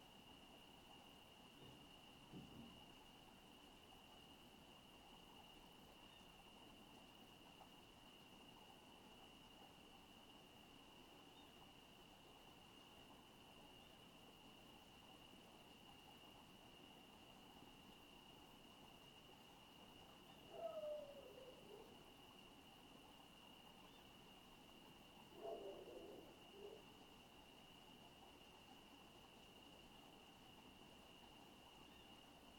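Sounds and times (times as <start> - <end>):
crickets chirping at night in a residential area: 0.0 - 32.5
night bird calling in a residential area: 20.3 - 22.0, 25.3 - 27.0.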